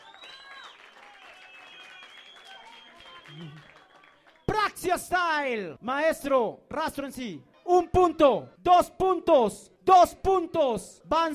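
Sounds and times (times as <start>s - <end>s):
faint audience clapping at a hip hop event: 0.0s - 5.1s
speech: 3.4s - 3.7s, 4.6s - 11.3s.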